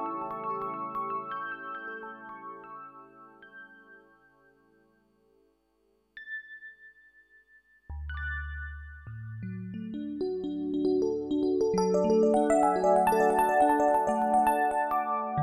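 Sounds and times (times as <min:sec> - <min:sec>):
electric piano: 0:00.0 - 0:05.0, 0:09.7 - 0:15.4.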